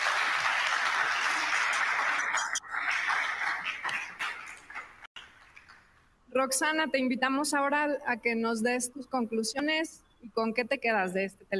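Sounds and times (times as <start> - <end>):
applause from a group: 0.0 - 6.0
speech: 6.4 - 11.5.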